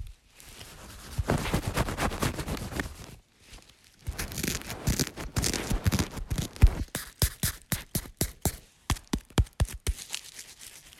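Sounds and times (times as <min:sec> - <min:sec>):
feather: 0:00.5 - 0:03.2, 0:04.1 - 0:10.2.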